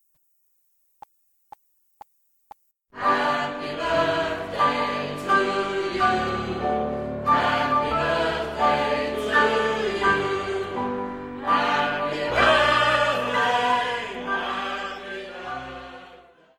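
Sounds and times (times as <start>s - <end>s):
party birthday song backing track in G: 3.0s - 16.1s.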